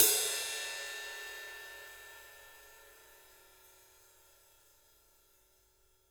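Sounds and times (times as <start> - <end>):
acoustic drum kit ride cymbal: 0.0 - 3.3.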